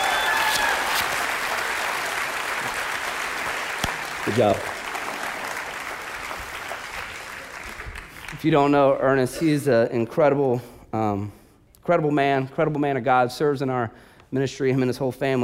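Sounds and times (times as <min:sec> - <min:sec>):
audience applause: 0:00.0 - 0:08.8
speech: 0:04.2 - 0:04.8, 0:08.4 - 0:15.4.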